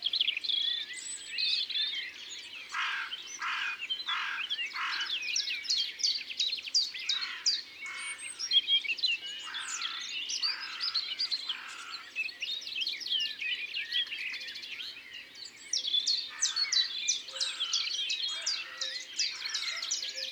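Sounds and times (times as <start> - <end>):
songbirds twittering: 0.0 - 20.3
carrion crow cawing: 2.8 - 5.1.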